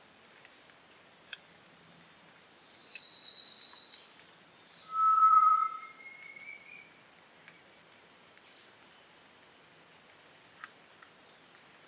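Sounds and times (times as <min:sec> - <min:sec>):
solitary tinamou whistled note: 0:04.9 - 0:06.8.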